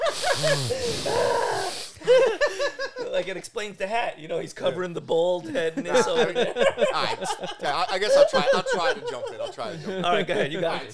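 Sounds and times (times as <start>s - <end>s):
person imitating heavy raspy breathing: 0.0s - 2.1s
laughter: 0.0s - 3.4s, 5.4s - 10.9s
speech: 0.4s - 1.4s, 2.0s - 10.9s.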